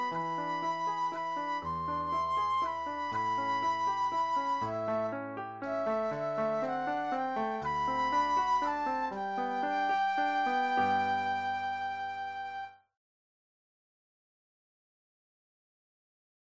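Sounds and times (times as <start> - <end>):
flute solo: 0.0 - 12.9.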